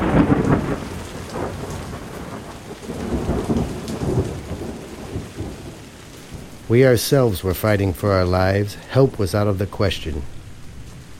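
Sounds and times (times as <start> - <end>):
deep rolling thunder: 0.0 - 8.4
heavy rain hissing: 0.0 - 11.1
speech: 0.1 - 0.6, 6.7 - 10.4.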